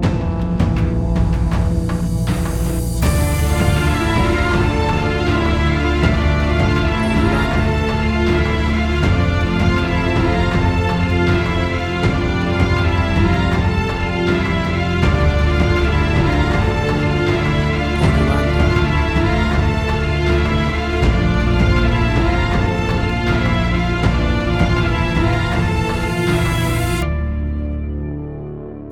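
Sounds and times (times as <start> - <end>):
big orchestral finale: 0.1 - 28.2.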